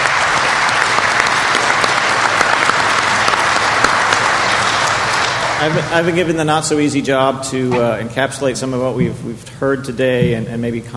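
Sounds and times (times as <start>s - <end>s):
crowd applauding for panelists: 0.0s - 8.0s
speech: 5.6s - 10.9s.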